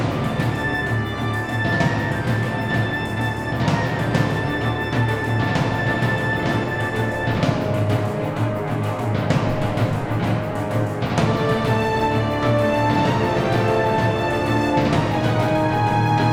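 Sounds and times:
catacomb music: 0.1s - 16.3s.

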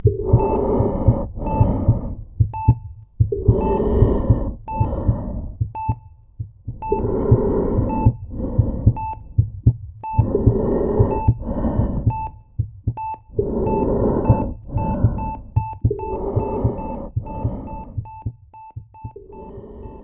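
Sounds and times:
breathing through a ventilation mask: 0.0s - 2.3s, 3.4s - 6.0s, 6.8s - 9.4s, 10.0s - 20.0s.

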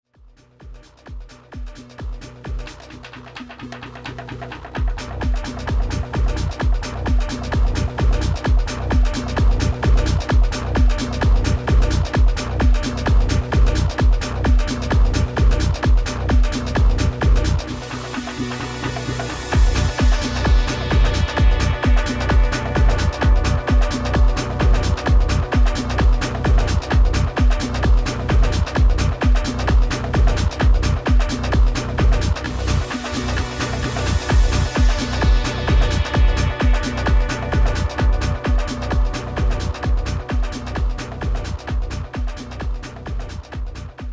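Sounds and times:
techno music: 0.2s - 44.1s.

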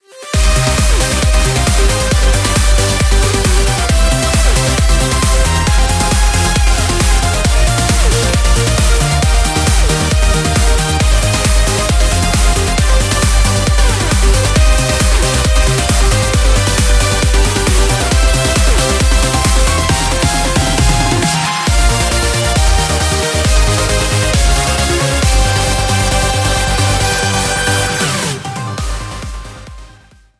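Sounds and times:
background music crossfade: 0.0s - 30.3s.

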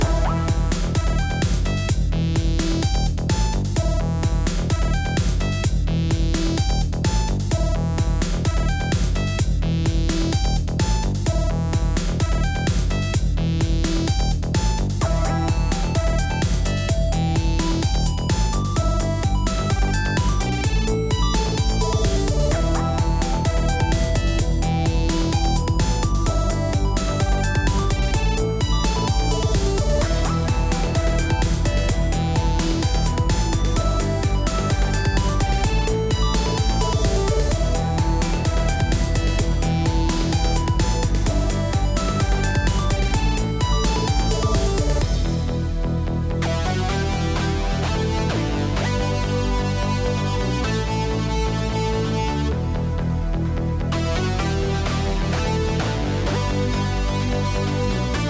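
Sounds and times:
8-bit chiptune music: 0.0s - 58.2s.

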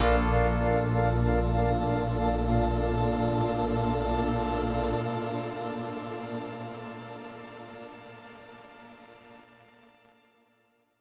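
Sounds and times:
intro drone: 0.0s - 5.1s.

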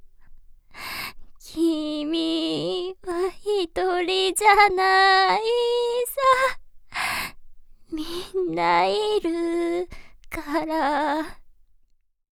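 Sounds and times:
Japanese a cappella song: 1.4s - 6.6s, 7.9s - 11.4s.

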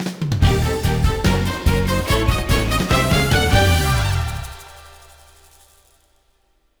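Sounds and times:
game item lottery win fanfare jingle: 0.4s - 5.8s.

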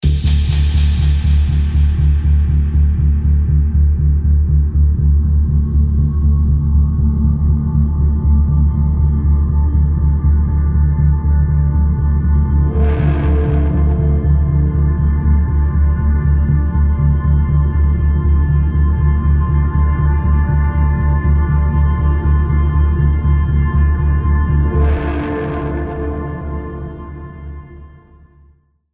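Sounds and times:
production music: 0.0s - 28.2s.

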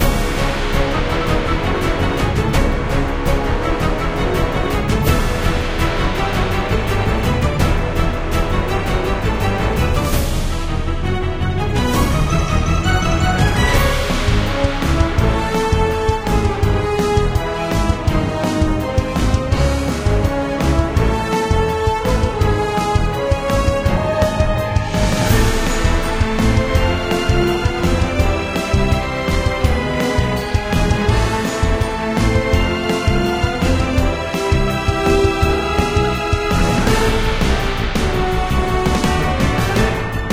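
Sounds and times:
arena battle music: 0.0s - 40.3s.

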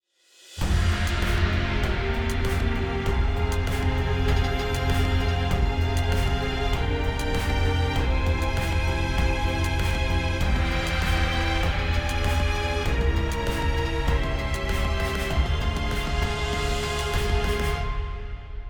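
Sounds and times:
villain win music: 0.6s - 18.0s.

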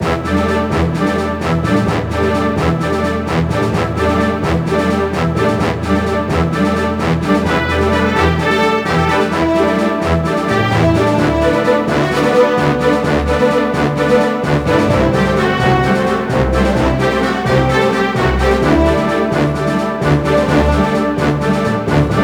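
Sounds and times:
battle music: 0.0s - 22.2s.

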